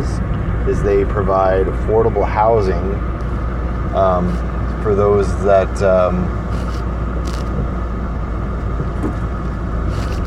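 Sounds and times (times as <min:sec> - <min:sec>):
car engine and road rumble while merging into traffic: 0:00.0 - 0:10.2
speech: 0:00.7 - 0:03.2, 0:03.9 - 0:06.4.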